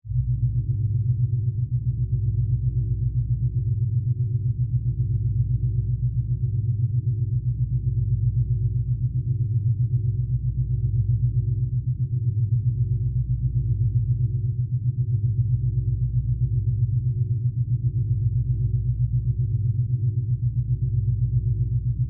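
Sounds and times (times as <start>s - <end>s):
sci-fi spaceship interior hallway power source drone with flutter: 0.1s - 22.0s.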